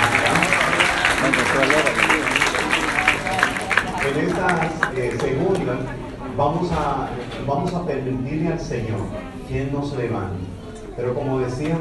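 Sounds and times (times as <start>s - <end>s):
audience applause: 0.0s - 5.7s
speech: 6.4s - 11.8s.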